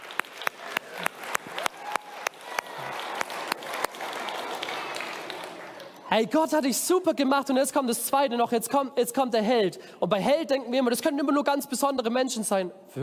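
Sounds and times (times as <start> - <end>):
applause: 0.0 - 6.0
speech: 6.1 - 13.0.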